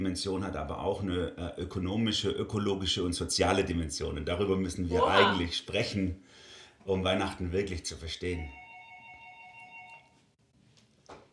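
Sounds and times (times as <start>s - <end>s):
speech: 0.0s - 8.6s
doorbell ringing: 8.4s - 10.2s.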